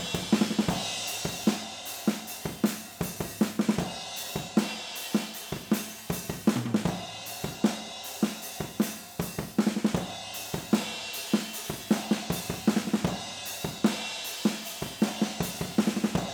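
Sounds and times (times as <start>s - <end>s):
drums recorded with overhead stereo microphones: 0.0s - 16.3s.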